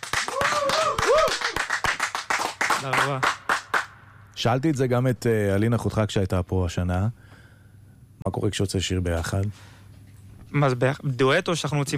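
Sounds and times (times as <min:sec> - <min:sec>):
clapping: 0:00.0 - 0:03.9
speech: 0:02.8 - 0:03.4, 0:04.4 - 0:07.3, 0:08.2 - 0:09.8, 0:10.5 - 0:11.9.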